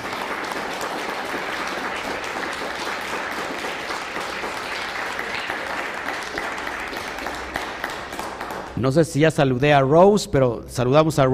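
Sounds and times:
applause: 0.0s - 9.0s
speech: 8.8s - 11.3s.

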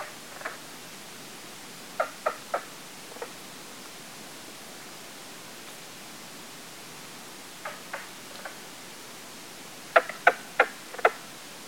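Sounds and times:
Mink frog hollow wooden knocking calls: 2.0s - 3.3s, 7.6s - 8.6s, 9.9s - 11.2s.

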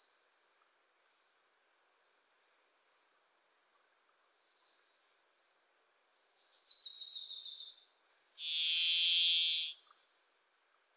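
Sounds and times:
varied thrush buzzy whistle: 8.4s - 9.8s.

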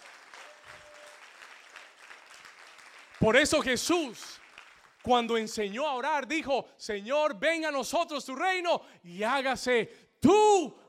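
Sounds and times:
audience applause: 0.0s - 5.3s
speech: 3.2s - 4.4s, 5.0s - 10.8s.

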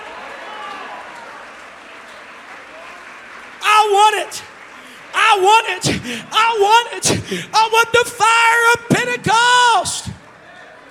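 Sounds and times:
audience clapping hands: 0.0s - 10.9s
audience shouting: 3.6s - 4.5s, 5.1s - 10.2s
speech: 3.8s - 4.5s, 5.3s - 10.1s.

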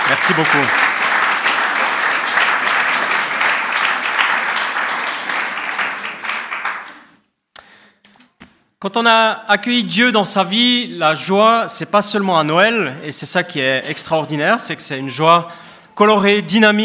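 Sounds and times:
audience applause: 0.0s - 7.2s
speech: 0.1s - 0.9s, 8.8s - 16.8s.

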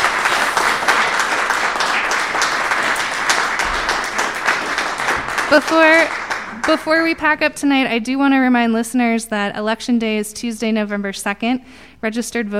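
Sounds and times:
live audience applause: 0.0s - 7.3s
speech: 5.5s - 12.5s.

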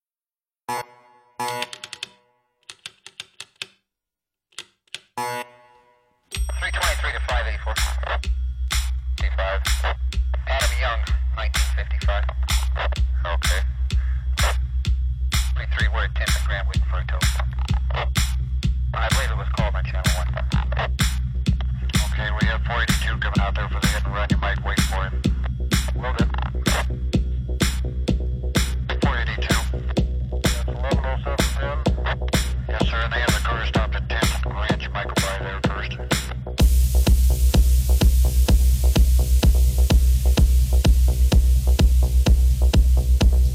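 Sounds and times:
live techno set: 6.4s - 43.5s.

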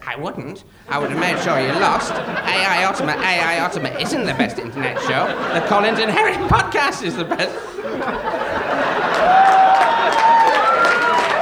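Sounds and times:
audience applause: 0.0s - 11.3s
laughter: 0.0s - 11.3s
speech: 0.1s - 8.4s.

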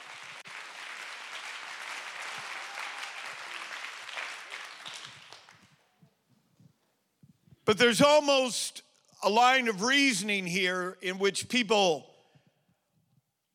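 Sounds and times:
crowd applauding: 0.0s - 5.9s
speech: 7.7s - 12.1s.

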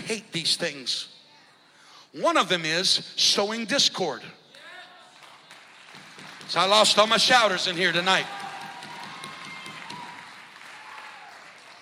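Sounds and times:
speech: 0.1s - 1.2s, 2.1s - 4.4s, 6.5s - 8.4s
audience clapping: 4.6s - 11.8s.

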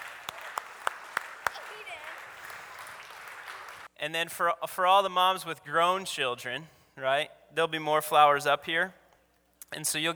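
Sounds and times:
thin round of hand claps: 0.0s - 3.9s
speech: 4.0s - 9.0s, 9.7s - 10.1s.

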